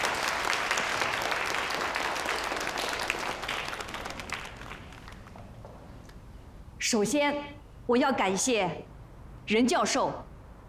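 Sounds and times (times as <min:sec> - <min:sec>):
audience applause: 0:00.0 - 0:05.6
speech: 0:06.9 - 0:08.9, 0:09.5 - 0:10.6.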